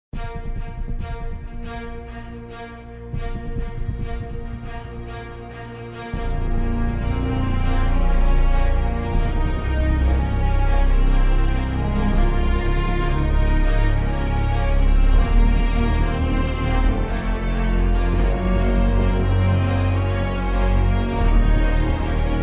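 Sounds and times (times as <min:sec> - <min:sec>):
epic action and adventure instrumental music: 0:00.2 - 0:22.4.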